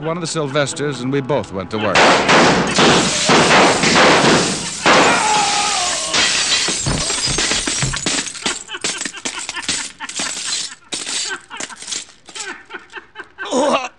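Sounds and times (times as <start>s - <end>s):
laughter: 0.0s - 1.0s, 1.6s - 3.9s, 4.5s - 13.9s
speech: 0.0s - 4.6s
gunshots shattering mirrors: 2.0s - 5.8s
mirror glass breaking: 2.0s - 12.6s
falling mirror shards tinkling: 2.7s - 13.0s.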